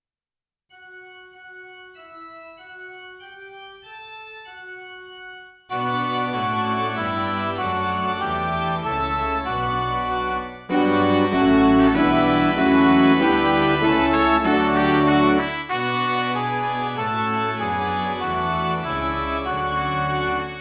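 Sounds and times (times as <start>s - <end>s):
midi music: 5.8s - 20.5s.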